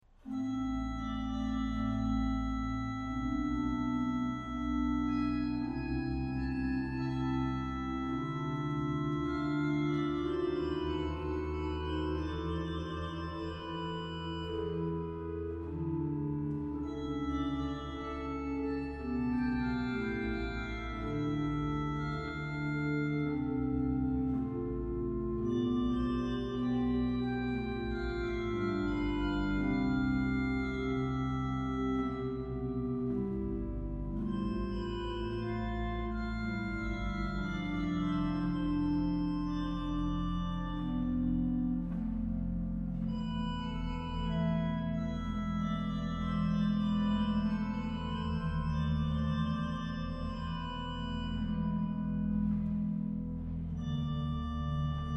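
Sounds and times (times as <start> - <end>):
organ playing a classical largo: 0.2 - 55.1.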